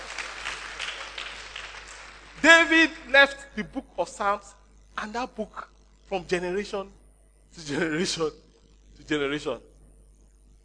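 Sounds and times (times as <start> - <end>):
audience applause: 0.0 - 2.4
speech: 2.4 - 8.4, 9.0 - 9.7.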